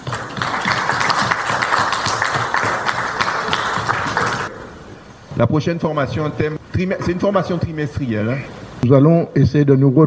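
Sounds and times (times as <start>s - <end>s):
audience applause: 0.0s - 4.6s
speech: 5.4s - 10.0s.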